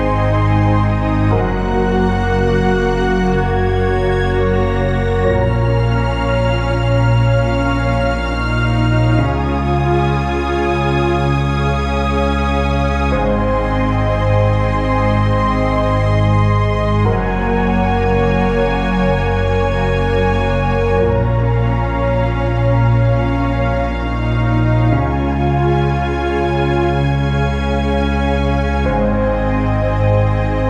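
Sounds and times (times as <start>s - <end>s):
orchestral ambient music: 0.0s - 30.6s.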